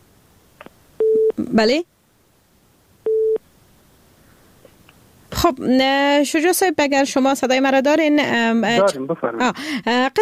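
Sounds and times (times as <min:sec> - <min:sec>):
speech: 0:01.4 - 0:01.9, 0:05.4 - 0:10.2
busy-signal tone from a phone call that failed to connect: 0:03.1 - 0:03.4.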